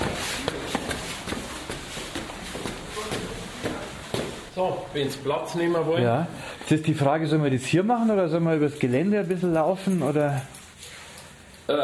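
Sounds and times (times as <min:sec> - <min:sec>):
people walking upstairs: 0:00.0 - 0:04.8
speech: 0:04.6 - 0:10.6, 0:11.7 - 0:11.8.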